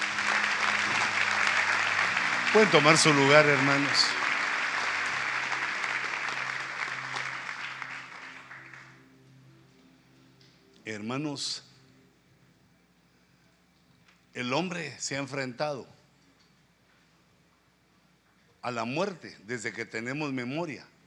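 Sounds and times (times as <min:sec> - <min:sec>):
audience applause: 0:00.0 - 0:09.0
speech: 0:02.5 - 0:04.2, 0:11.1 - 0:11.7, 0:14.4 - 0:16.0, 0:18.6 - 0:20.9.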